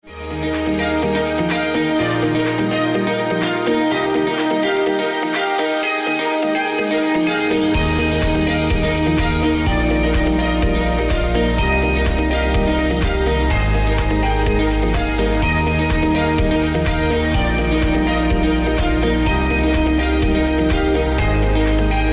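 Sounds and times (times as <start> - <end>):
uplifting corporate music: 0.0 - 22.1.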